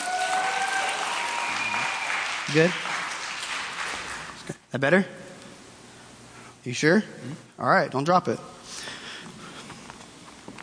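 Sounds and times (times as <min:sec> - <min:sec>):
faint cheers and whistles: 0:00.0 - 0:02.4
crowd applauding: 0:00.0 - 0:04.5
speech: 0:02.5 - 0:02.9, 0:04.7 - 0:05.2, 0:06.6 - 0:08.8.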